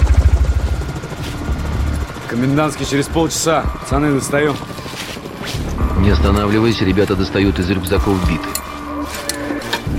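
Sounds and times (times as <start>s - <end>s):
helicopters flying overhead: 0.0s - 9.9s
speech: 2.3s - 5.0s, 6.0s - 8.6s.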